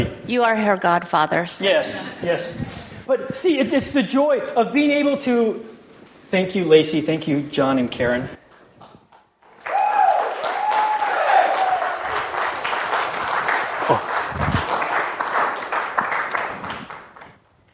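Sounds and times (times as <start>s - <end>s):
speech: 0.0s - 5.7s, 6.3s - 8.4s
audience applause: 9.4s - 17.4s.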